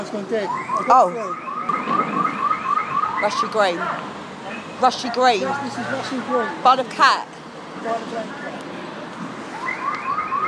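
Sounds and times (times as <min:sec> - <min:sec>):
speech: 0:00.0 - 0:02.1, 0:03.2 - 0:04.2, 0:04.8 - 0:08.6
car alarm going off: 0:00.4 - 0:03.6, 0:09.6 - 0:10.4.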